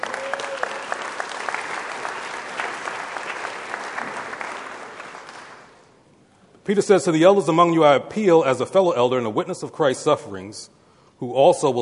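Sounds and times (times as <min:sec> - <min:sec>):
audience applauding: 0:00.0 - 0:05.9
speech: 0:06.7 - 0:11.8.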